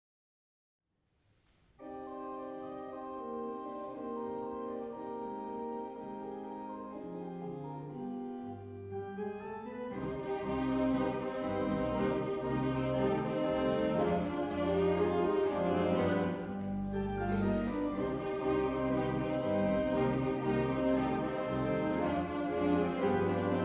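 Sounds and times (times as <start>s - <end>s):
tango music: 1.8s - 23.6s.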